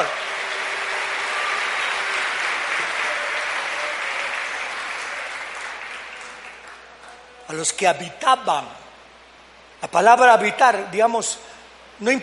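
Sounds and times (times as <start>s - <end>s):
loud applause from a large crowd: 0.0s - 7.5s
speech: 7.5s - 8.8s, 9.8s - 12.2s.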